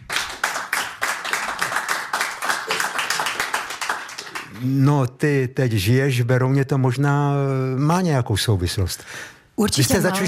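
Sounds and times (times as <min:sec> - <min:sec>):
audience applause: 0:00.0 - 0:04.6
speech: 0:04.6 - 0:10.2.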